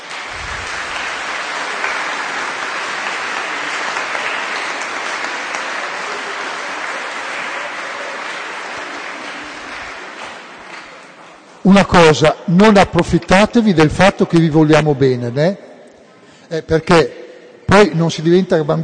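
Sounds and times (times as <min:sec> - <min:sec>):
applause: 0:00.0 - 0:11.5
speech: 0:11.6 - 0:15.6, 0:16.5 - 0:18.8.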